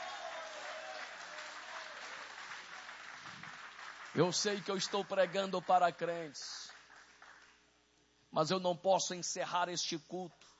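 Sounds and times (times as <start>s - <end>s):
audience applauding: 0.0s - 7.6s
speech: 4.2s - 6.7s, 8.4s - 10.5s.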